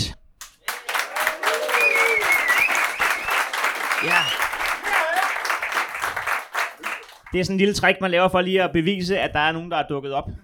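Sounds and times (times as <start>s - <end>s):
live audience applause: 0.5s - 7.4s
speech: 7.3s - 10.4s.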